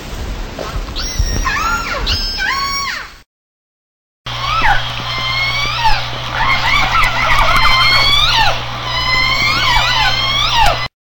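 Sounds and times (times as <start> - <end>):
orca whistles and calls in Antarctica: 1.0 - 3.2, 4.3 - 10.9.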